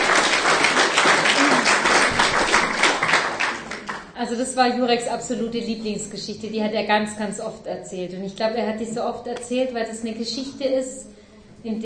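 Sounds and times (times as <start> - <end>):
audience applause: 0.0 - 4.1
speech: 4.2 - 11.8.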